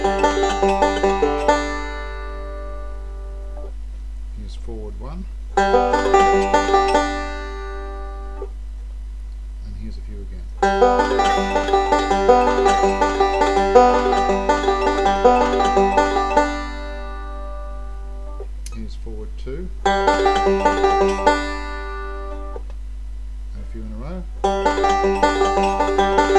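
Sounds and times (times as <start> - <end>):
banjo playing basic rolls: 0.0 - 3.7, 5.5 - 8.5, 10.6 - 18.4, 19.8 - 22.6, 24.4 - 26.3.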